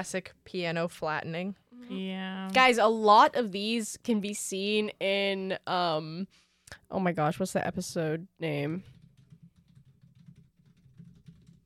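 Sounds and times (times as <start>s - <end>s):
speech: 0.0s - 8.9s
furious typing on a computer keyboard: 8.8s - 11.6s.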